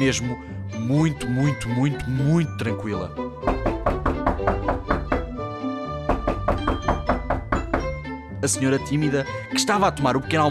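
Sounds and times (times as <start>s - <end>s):
speech: 0.0s - 4.8s, 8.4s - 10.4s
knocking on a front door: 3.4s - 5.4s, 6.1s - 8.0s.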